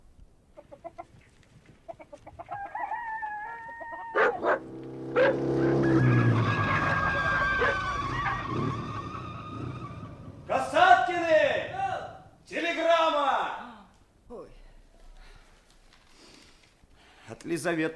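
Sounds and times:
chickens clucking: 0:00.5 - 0:04.4
rooster calling: 0:02.3 - 0:04.6, 0:05.2 - 0:10.2
motorcycle engine roaring and idling: 0:04.2 - 0:12.4
speech: 0:17.6 - 0:17.9.

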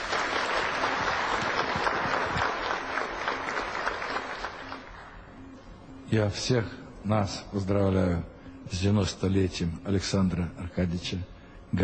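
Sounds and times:
audience applause: 0:00.0 - 0:05.1
speech: 0:06.1 - 0:11.8.

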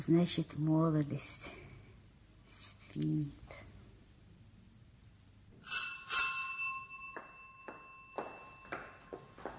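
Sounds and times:
speech: 0:00.0 - 0:01.6, 0:03.0 - 0:03.6
doorbell chimes: 0:05.6 - 0:09.4.

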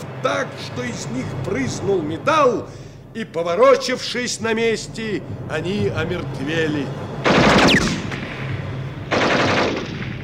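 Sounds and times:
low droning hum: 0:00.0 - 0:10.2
speech: 0:00.2 - 0:07.9
machine gun firing bursts: 0:07.2 - 0:08.1, 0:09.1 - 0:10.2.

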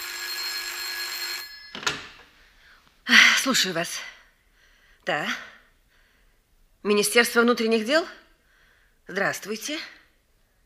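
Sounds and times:
telephone bell ringing: 0:00.0 - 0:02.2
speech: 0:03.4 - 0:04.1, 0:05.0 - 0:05.5, 0:06.8 - 0:08.2, 0:09.1 - 0:10.0.

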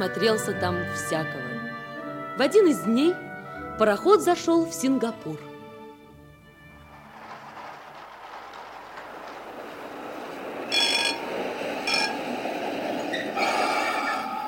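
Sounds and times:
speech: 0:00.0 - 0:01.5, 0:02.4 - 0:05.5
tram running on rails: 0:06.4 - 0:14.4.

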